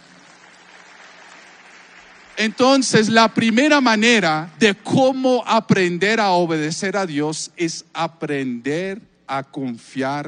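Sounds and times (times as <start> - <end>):
audience applause: 0.0 - 3.7
speech: 2.4 - 10.2.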